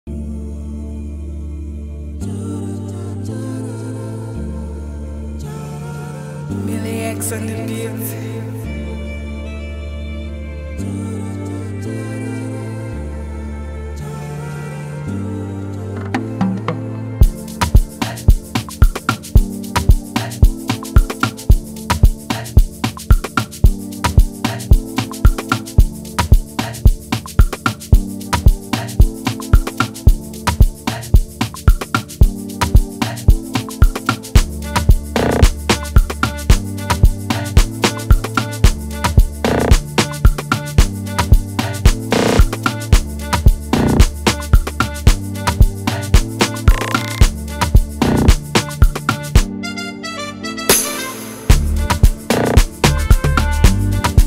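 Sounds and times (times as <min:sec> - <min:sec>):
instrumental music: 0:05.1 - 0:54.2.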